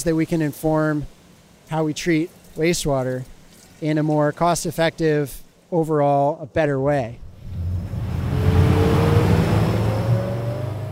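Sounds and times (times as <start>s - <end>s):
speech: 0.0s - 7.2s
small motorboat speeding along the Willamette River: 7.4s - 10.9s.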